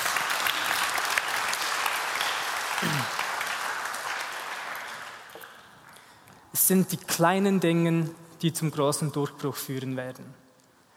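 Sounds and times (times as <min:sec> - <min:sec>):
audience applause: 0:00.0 - 0:06.1
speech: 0:02.8 - 0:03.2, 0:06.7 - 0:10.4.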